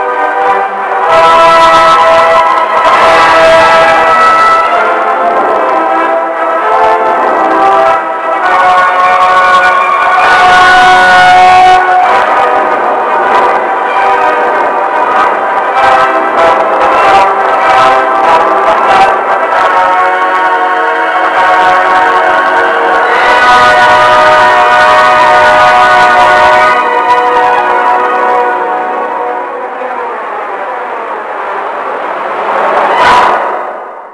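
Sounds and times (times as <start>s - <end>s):
sirens: 0.0s - 34.1s.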